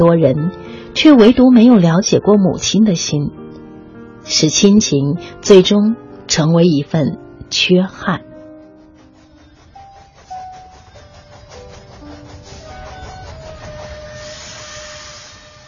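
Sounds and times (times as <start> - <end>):
speech: 0.0 - 3.4, 4.2 - 8.3
train rumbling on rails: 6.4 - 15.6
thin shifting metallic whines: 8.4 - 15.6
train wheels clacking: 8.6 - 14.3.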